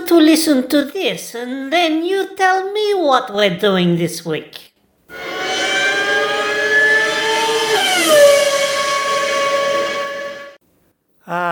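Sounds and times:
speech: 0.1s - 5.3s, 11.3s - 11.5s
Formula 1 V12 car passing on a racetrack with Doppler shift: 5.1s - 10.6s.

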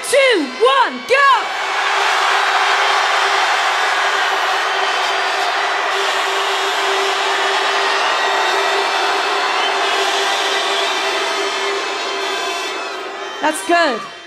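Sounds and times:
arena crowd shouting as loud as possible: 0.0s - 14.2s
speech: 0.6s - 1.3s, 13.5s - 14.1s.

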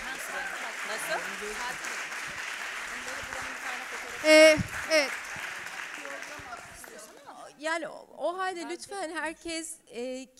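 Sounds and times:
audience applause: 0.0s - 7.2s
speech: 1.1s - 2.1s, 3.0s - 5.4s, 6.0s - 10.3s.

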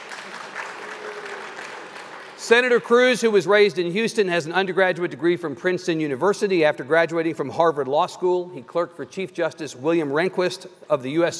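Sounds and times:
audience applause: 0.0s - 2.8s
speech: 2.5s - 11.3s.

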